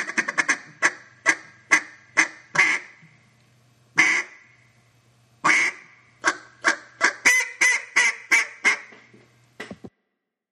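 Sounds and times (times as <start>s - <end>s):
duck call: 0.0s - 3.0s, 4.0s - 4.4s, 5.4s - 9.0s.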